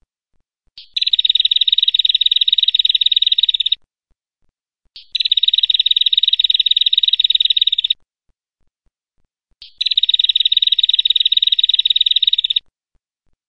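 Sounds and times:
female prenjak bird chirping: 0.8s - 3.8s, 5.0s - 8.0s, 9.6s - 12.7s.

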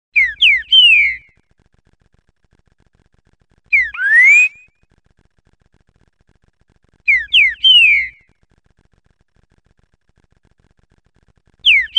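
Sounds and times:
green-winged saltator song of rich slurred rising and falling whistles: 0.2s - 1.4s, 3.7s - 4.8s, 7.1s - 8.3s, 11.6s - 11.9s.

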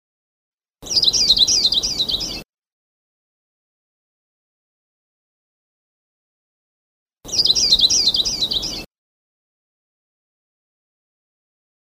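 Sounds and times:
Sulawesi leaf warbler singing: 0.8s - 2.4s, 7.3s - 8.9s.

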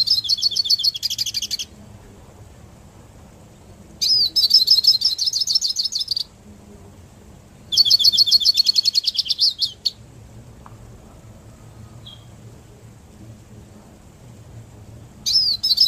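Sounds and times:
hooded siskin twittering song: 0.0s - 1.8s, 4.0s - 6.4s, 7.6s - 10.0s, 12.0s - 12.4s, 15.2s - 15.8s.

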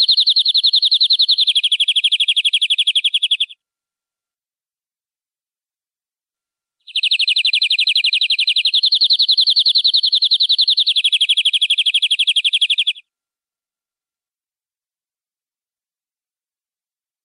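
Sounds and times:
canary singing long-duration rolling trill: 0.0s - 3.6s, 6.9s - 13.0s.

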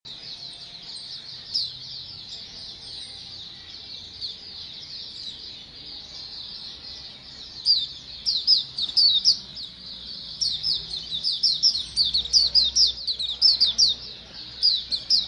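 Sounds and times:
flock of white-eyes chirping: 7.6s - 15.2s.

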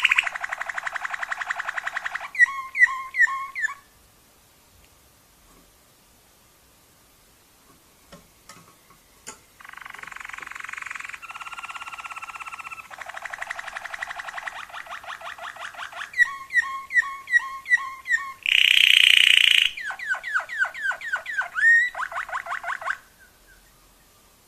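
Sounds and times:
Waterslager canary singing bubbling dipping notes: 0.0s - 3.9s, 9.6s - 23.7s.

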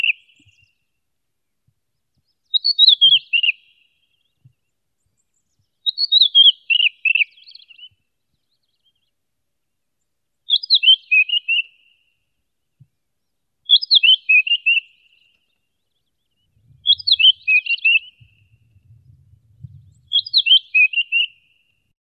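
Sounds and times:
red-winged blackbird calling: 0.0s - 0.7s, 2.5s - 4.3s, 5.8s - 8.0s, 10.5s - 12.0s, 13.7s - 21.7s.

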